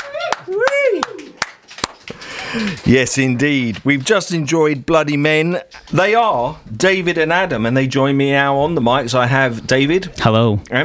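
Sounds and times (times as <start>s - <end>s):
scattered hand claps after a live performance: 0.0s - 2.8s
speech: 2.5s - 10.8s.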